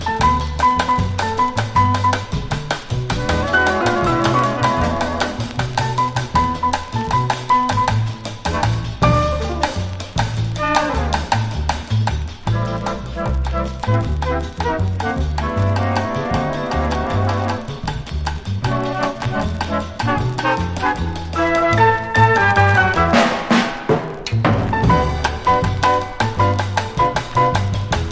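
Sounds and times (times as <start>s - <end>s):
jazz and samba music: 0.0s - 28.0s.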